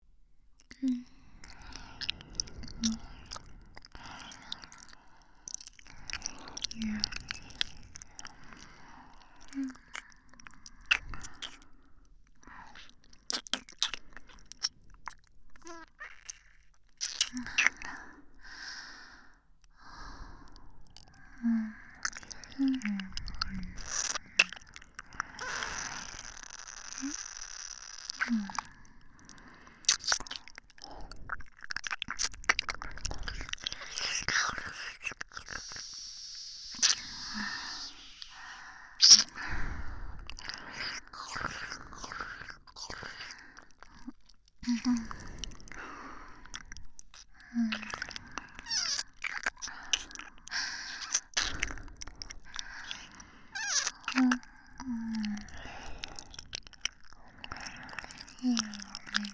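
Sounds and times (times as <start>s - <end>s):
ear licking sounds on left and right: 0.6s - 11.7s, 12.4s - 18.6s, 19.7s - 59.3s.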